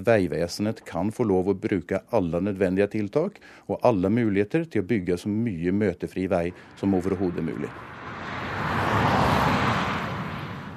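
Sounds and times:
speech: 0.0s - 8.0s
cars rushing past on the E6 motorway in Østfold: 6.2s - 10.7s.

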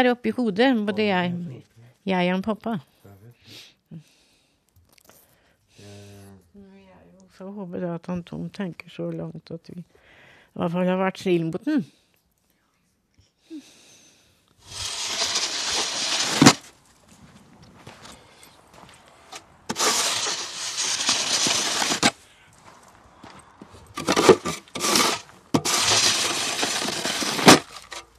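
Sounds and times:
speech: 0.0s - 4.1s, 7.4s - 10.0s, 10.6s - 12.0s
shovelling snow off a farmyard: 14.6s - 16.7s, 18.8s - 22.2s, 23.8s - 28.1s.

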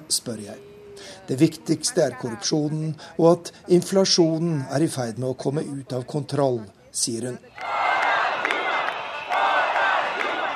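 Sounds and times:
speech: 0.1s - 7.7s
hundreds of thousands of demonstrators shouting in the streets of Brazil's largest city: 7.5s - 10.5s.

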